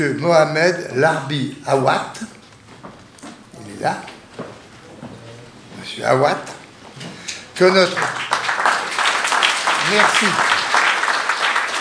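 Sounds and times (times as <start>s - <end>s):
speech: 0.0s - 2.4s, 3.8s - 4.1s, 5.9s - 6.6s, 7.6s - 8.4s, 9.8s - 10.6s
spontaneous audience applause: 7.7s - 11.7s.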